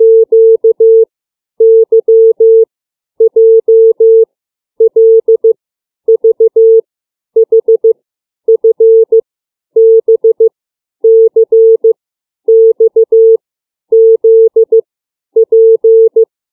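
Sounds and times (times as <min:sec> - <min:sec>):
CW Morse code beeps of the alphabet: 0:00.0 - 0:01.0, 0:01.6 - 0:02.7, 0:03.3 - 0:04.3, 0:04.9 - 0:05.5, 0:06.2 - 0:06.8, 0:07.4 - 0:09.2, 0:09.8 - 0:10.5, 0:11.1 - 0:11.9, 0:12.5 - 0:14.8, 0:15.4 - 0:16.2.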